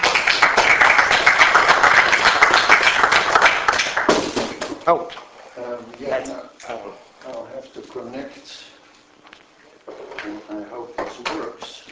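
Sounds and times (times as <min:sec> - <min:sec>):
audience applause: 0:00.0 - 0:04.2
speech: 0:04.9 - 0:05.2, 0:06.0 - 0:08.7, 0:10.2 - 0:11.9.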